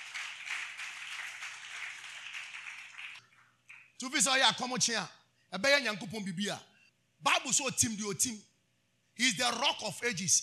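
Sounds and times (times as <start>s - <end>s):
audience clapping: 0.0s - 4.0s
speech: 4.0s - 8.5s, 9.2s - 10.4s.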